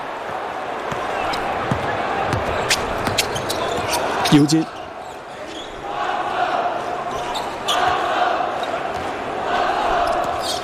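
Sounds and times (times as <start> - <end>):
crowd noise: 0.0 - 10.6
basketball dribbled on court during a game: 0.9 - 3.3
speech: 4.3 - 4.8.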